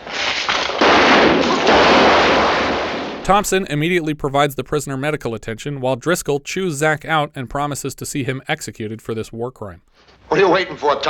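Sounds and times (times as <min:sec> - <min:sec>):
rapid gunfire from a film scene: 0:00.2 - 0:03.2
speech: 0:03.2 - 0:11.0.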